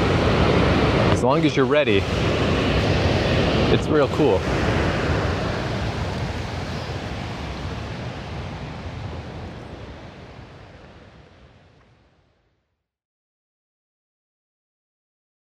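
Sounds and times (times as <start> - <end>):
rushing waterfall: 0.0 - 12.1
speech: 1.2 - 2.4, 3.7 - 4.7.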